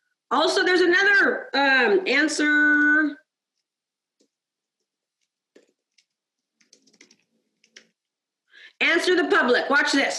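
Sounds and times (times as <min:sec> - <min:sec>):
speech: 0:00.3 - 0:03.2, 0:08.8 - 0:10.1
typing a search on a computer keyboard: 0:04.2 - 0:08.0.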